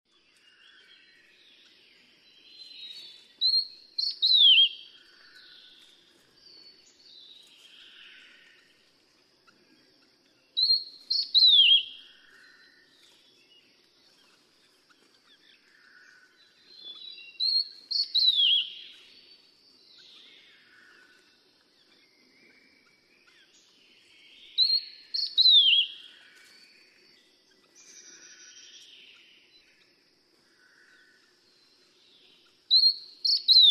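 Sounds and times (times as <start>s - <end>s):
Steere's liocichla whistling: 3.4s - 4.9s, 10.6s - 12.0s, 17.4s - 18.9s, 24.6s - 26.0s, 32.7s - 33.6s.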